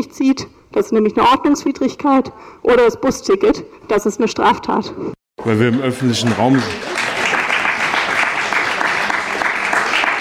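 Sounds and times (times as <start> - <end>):
speech: 0.0 - 6.9
audience applause: 5.9 - 10.1.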